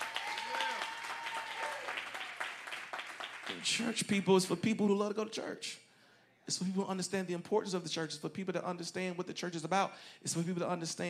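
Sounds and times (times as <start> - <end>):
audience clapping hands: 0.0 - 4.1
speech: 3.5 - 5.8, 6.5 - 11.0.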